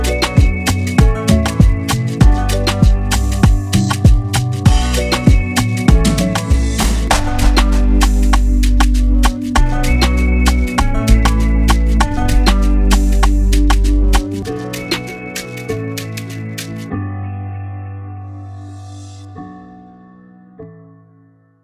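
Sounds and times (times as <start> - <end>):
afrobeat music: 0.0 - 17.0.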